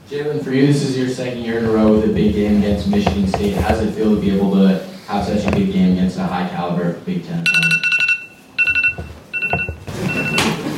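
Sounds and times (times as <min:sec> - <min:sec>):
speech: 0:00.1 - 0:07.9
mobile phone ringtone during a post-game press conference: 0:07.5 - 0:10.6.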